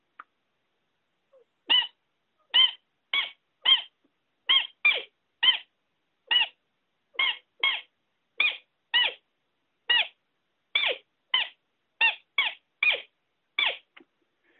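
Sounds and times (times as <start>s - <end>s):
roe deer squeak call played on lure: 1.7s - 3.9s, 6.3s - 6.6s, 7.2s - 9.2s, 10.8s - 13.9s.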